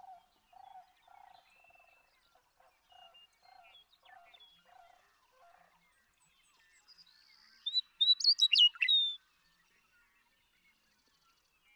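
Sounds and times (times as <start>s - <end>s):
western meadowlark song: 7.6s - 9.2s.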